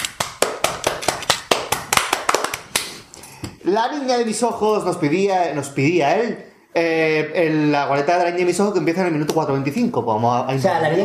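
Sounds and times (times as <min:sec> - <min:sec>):
hand clapping: 0:00.0 - 0:03.1
speech: 0:03.6 - 0:11.0.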